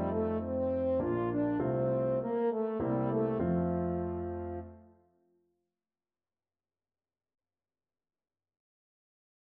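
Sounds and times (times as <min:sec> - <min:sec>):
French horn: 0:00.0 - 0:04.9.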